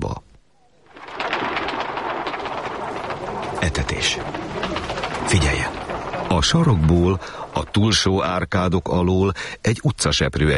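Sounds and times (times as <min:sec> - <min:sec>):
huge flock of pigeons bursting into flight: 0:00.8 - 0:08.3
speech: 0:03.6 - 0:10.5.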